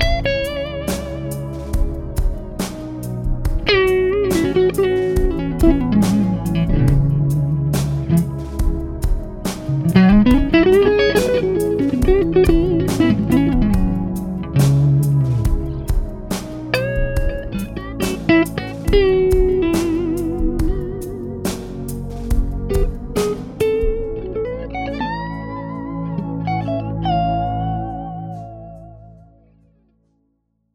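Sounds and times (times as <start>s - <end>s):
Mercury EL34 Stratocaster electric guitar: 0.0s - 2.7s, 3.5s - 29.3s.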